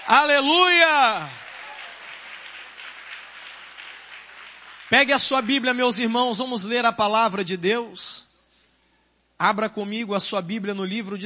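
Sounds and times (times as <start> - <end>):
audience applauding: 0.0 - 6.0
speech: 0.1 - 1.4, 4.9 - 8.3, 9.4 - 11.2.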